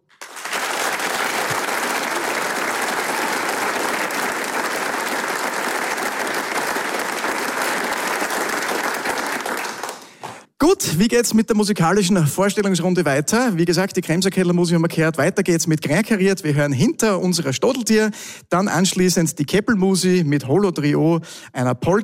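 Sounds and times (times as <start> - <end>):
audience applause at a premiere concert in the Arbeiterheimsaal, Vonsdorf: 0.0 - 10.5
speech: 10.8 - 22.0.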